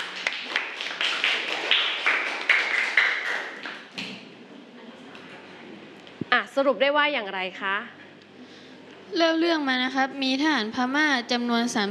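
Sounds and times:
students applauding: 0.0s - 3.9s
speech: 6.4s - 8.0s, 9.1s - 11.8s.

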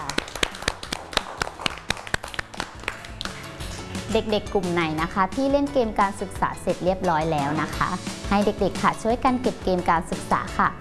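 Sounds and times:
children clapping: 0.0s - 3.6s
speech: 4.1s - 10.7s.

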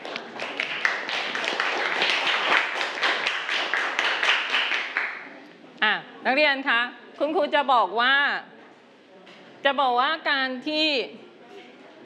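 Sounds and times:
students clapping: 0.0s - 5.3s
speech: 6.3s - 8.5s, 9.6s - 11.2s.

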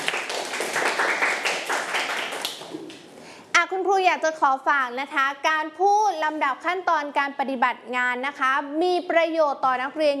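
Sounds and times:
group of children clapping for a classmate: 0.0s - 3.1s
speech: 4.0s - 10.1s.

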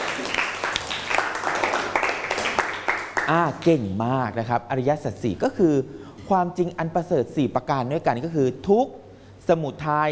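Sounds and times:
classroom applause: 0.0s - 3.4s
speech: 3.3s - 10.1s.

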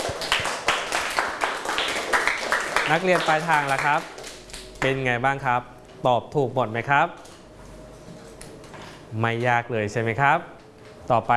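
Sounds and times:
clapping: 0.0s - 5.0s
speech: 2.9s - 4.2s, 4.8s - 7.2s, 9.1s - 11.3s.

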